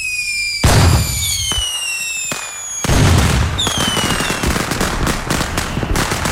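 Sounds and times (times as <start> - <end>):
fireworks booming bursts: 0.6 - 6.2.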